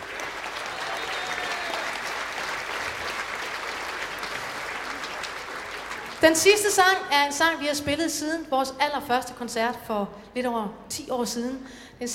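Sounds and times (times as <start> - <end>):
live folk concert audience clapping: 0.0 - 6.8
speech: 6.2 - 12.1.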